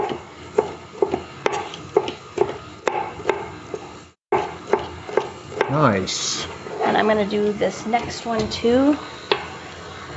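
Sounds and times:
knife chopping peppers: 0:00.0 - 0:03.5, 0:04.3 - 0:05.8
speech: 0:05.8 - 0:09.2.

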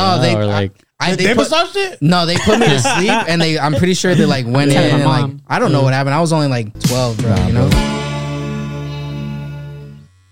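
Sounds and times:
speech: 0:00.0 - 0:08.0
laughter: 0:02.3 - 0:05.4
electric body hair trimmer buzzing: 0:09.6 - 0:10.3.

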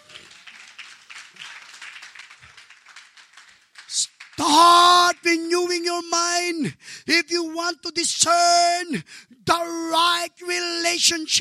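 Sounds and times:
audience clapping: 0:00.0 - 0:05.8
speech: 0:04.4 - 0:11.4.

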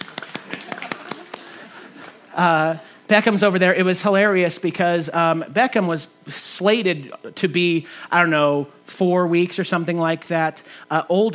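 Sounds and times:
soft light hand claps like a polite golf clap: 0:00.0 - 0:02.2
speech: 0:02.4 - 0:11.3.

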